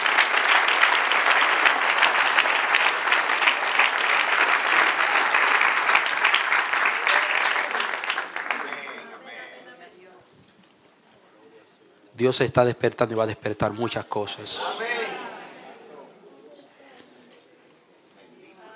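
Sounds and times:
audience applauding: 0.0s - 9.3s
speech: 12.2s - 14.9s.

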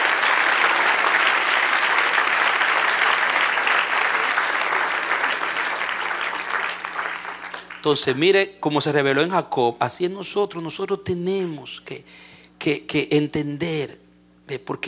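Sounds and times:
audience applauding: 0.0s - 8.2s
speech: 7.8s - 14.8s.

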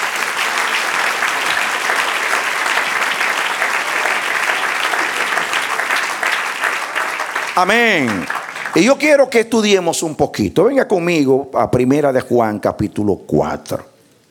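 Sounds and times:
audience applauding: 0.0s - 10.0s
speech: 7.6s - 13.9s.

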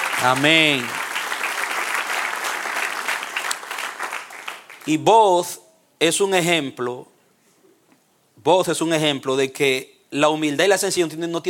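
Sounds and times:
crowd clapping: 0.0s - 5.0s
speech: 0.2s - 1.0s, 4.8s - 7.1s, 8.4s - 11.4s.

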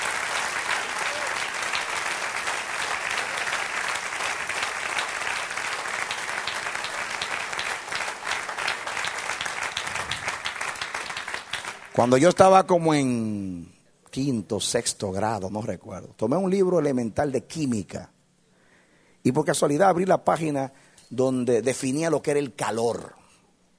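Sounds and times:
audience applause: 0.0s - 12.3s
speech: 12.0s - 18.2s, 19.2s - 23.2s.

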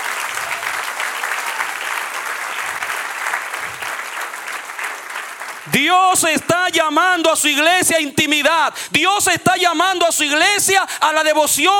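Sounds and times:
audience applause: 0.0s - 6.4s
speech: 5.7s - 11.7s.

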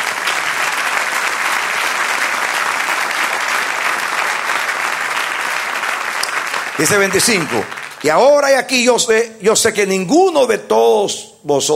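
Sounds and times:
audience applause: 0.0s - 8.7s
speech: 6.8s - 11.7s.

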